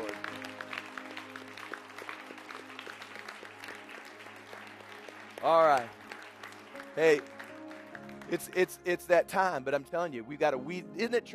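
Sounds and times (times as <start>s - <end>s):
audience hand clapping: 0.0s - 9.5s
speech: 5.4s - 6.0s, 7.0s - 7.4s, 8.3s - 11.3s.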